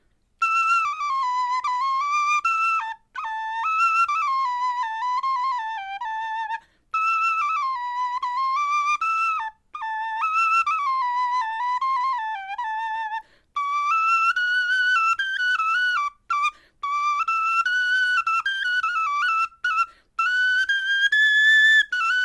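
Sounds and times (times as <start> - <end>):
bone flute melody: 0.0 - 22.2.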